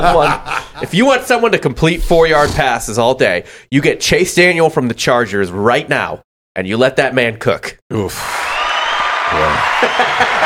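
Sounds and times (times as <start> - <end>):
laughter: 0.0 - 1.2, 9.2 - 10.4
speech: 0.0 - 8.5, 9.3 - 10.4
round of applause: 8.1 - 10.4.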